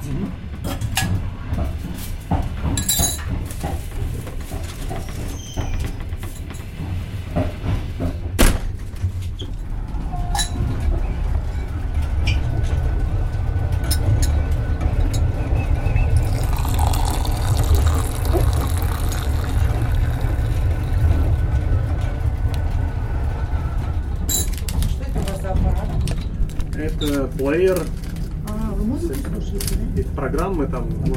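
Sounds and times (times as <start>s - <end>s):
low rumble of a moving train: 0.0s - 31.1s
tea poured from a kettle into cups: 16.0s - 21.5s
speech: 27.0s - 28.0s, 30.2s - 31.1s.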